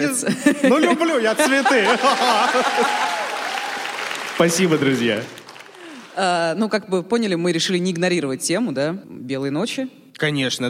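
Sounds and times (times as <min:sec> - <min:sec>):
speech: 0:00.0 - 0:03.2, 0:04.4 - 0:05.4, 0:06.2 - 0:10.6
laughter: 0:00.2 - 0:03.4
audience applause: 0:01.4 - 0:06.2.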